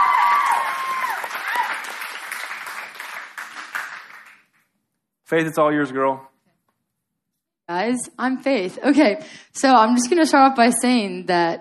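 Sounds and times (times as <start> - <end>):
audience clapping: 0.0 - 4.8
speech: 5.3 - 6.3, 7.7 - 11.5.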